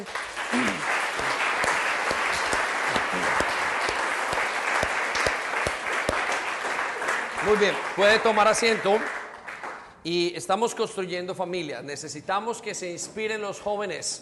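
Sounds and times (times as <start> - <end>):
audience applause: 0.0 - 9.9
speech: 7.5 - 9.2, 10.0 - 14.1.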